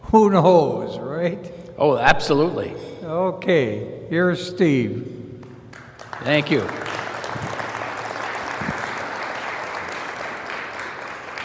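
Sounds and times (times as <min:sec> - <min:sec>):
speech: 0:00.1 - 0:05.2, 0:06.2 - 0:07.5
audience applause: 0:05.7 - 0:11.4.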